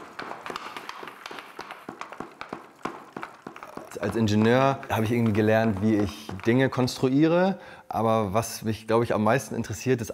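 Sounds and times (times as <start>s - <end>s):
applause machine clapping via bicycle chains: 0.0s - 7.2s
speech: 3.9s - 10.1s.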